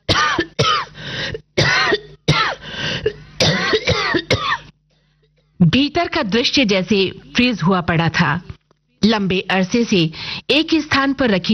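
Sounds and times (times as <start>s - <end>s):
man coughing after inhaling dust: 0.0s - 1.0s, 1.6s - 4.7s
speech: 5.7s - 11.5s.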